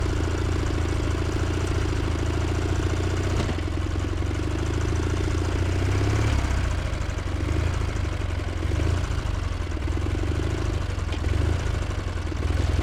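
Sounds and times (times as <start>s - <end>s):
Dnepr M72 motorcycle engine running, onboard: 0.0s - 12.8s.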